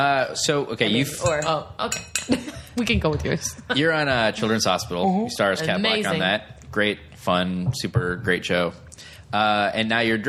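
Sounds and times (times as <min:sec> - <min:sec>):
speech: 0:00.0 - 0:10.2
spoon clinking against a mug while stirring tea: 0:01.2 - 0:02.3.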